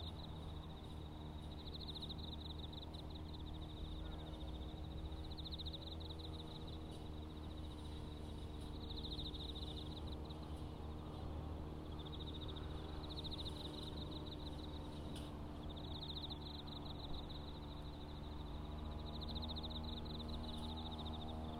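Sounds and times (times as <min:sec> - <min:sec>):
autumn insects trilling: 0:00.0 - 0:21.5
grass mower engine droning: 0:00.0 - 0:21.5.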